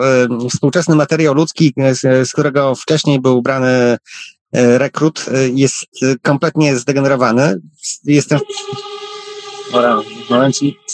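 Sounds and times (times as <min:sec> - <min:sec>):
speech: 0:00.0 - 0:08.9, 0:09.7 - 0:10.9
arriving train sounding its horn: 0:08.3 - 0:10.9.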